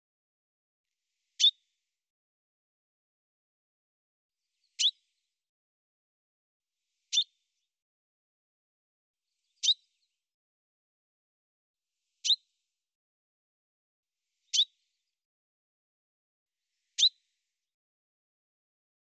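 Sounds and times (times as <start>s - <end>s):
bird chirping: 1.4s - 1.6s, 4.5s - 5.2s, 9.4s - 10.1s, 14.5s - 15.1s, 16.8s - 17.2s.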